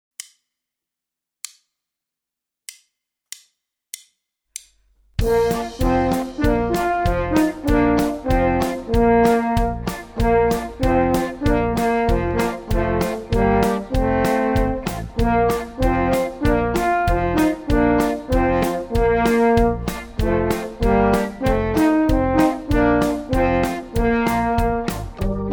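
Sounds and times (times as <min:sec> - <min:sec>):
ringtones duet: 0:05.3 - 0:25.5.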